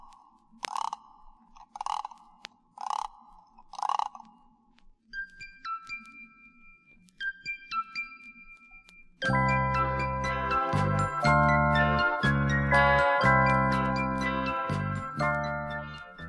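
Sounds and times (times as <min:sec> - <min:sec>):
music box tinkling melody: 0:05.2 - 0:16.2.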